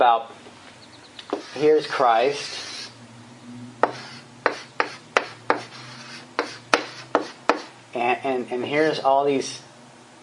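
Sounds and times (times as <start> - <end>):
speech: 0.0 - 0.4, 1.5 - 2.7, 8.0 - 9.7
low constant hum: 0.0 - 10.2
scratchy drawing strokes on a board: 1.3 - 3.0, 3.8 - 7.7.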